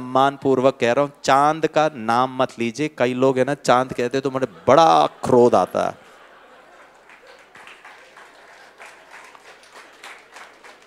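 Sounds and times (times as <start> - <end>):
speech: 0.1 - 6.0
laughter: 4.1 - 10.8
audience applause: 6.6 - 10.8.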